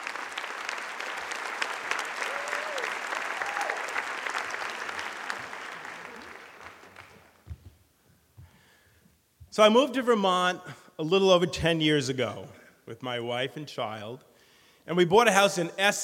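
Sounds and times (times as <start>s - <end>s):
live audience applause: 0.0s - 7.5s
speech: 9.6s - 14.3s, 14.9s - 16.0s.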